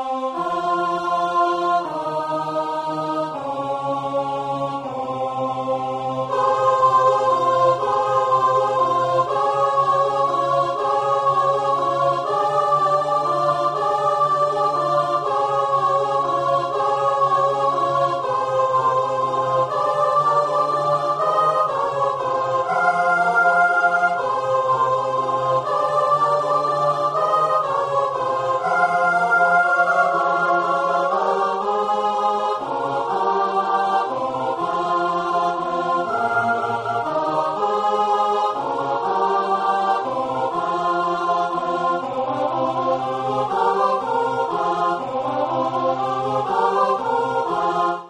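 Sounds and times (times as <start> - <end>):
tenor singing: 0.1 - 48.0.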